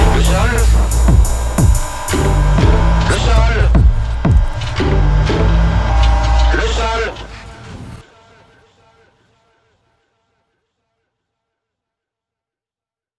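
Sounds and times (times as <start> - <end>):
rap music: 0.0 - 9.1.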